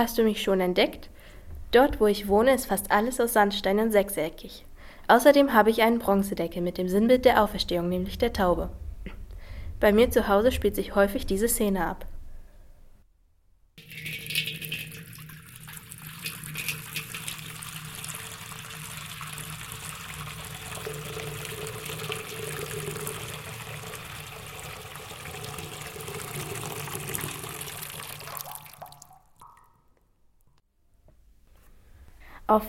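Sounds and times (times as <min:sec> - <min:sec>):
speech: 0:00.0 - 0:09.2, 0:09.8 - 0:12.1
water dripped during baptism: 0:13.8 - 0:30.0.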